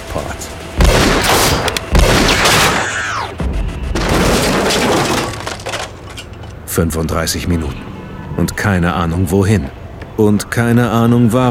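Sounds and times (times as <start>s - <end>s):
speech: 0.1s - 0.7s, 6.8s - 11.4s
Magnum revolver gunshots: 0.8s - 4.5s.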